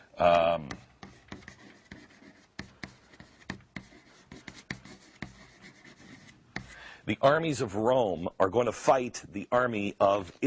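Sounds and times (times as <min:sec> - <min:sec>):
speech: 0:00.2 - 0:00.9, 0:07.1 - 0:10.4
marker writing notes on a board: 0:00.2 - 0:06.8.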